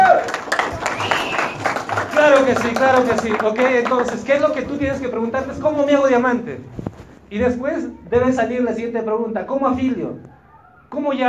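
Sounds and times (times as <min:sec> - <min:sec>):
audience applause: 0:00.0 - 0:05.1
speech: 0:02.4 - 0:11.2.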